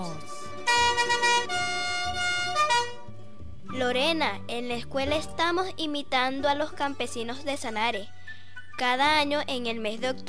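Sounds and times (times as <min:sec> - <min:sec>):
loud blaring bus horn-like tone: 0:00.6 - 0:03.1
speech: 0:03.9 - 0:08.2, 0:08.8 - 0:10.2.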